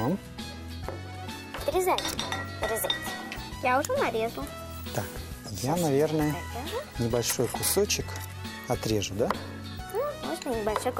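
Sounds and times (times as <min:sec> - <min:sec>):
faint kitchen background: 0:00.0 - 0:10.9
metallic clinks of frying pan and utensils on a stove: 0:01.6 - 0:03.6, 0:07.0 - 0:08.3
speech: 0:01.7 - 0:09.6, 0:10.4 - 0:10.9.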